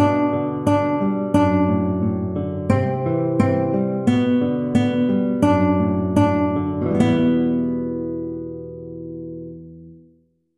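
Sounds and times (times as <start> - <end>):
two guitars playing on the B string: 0.0 - 10.1.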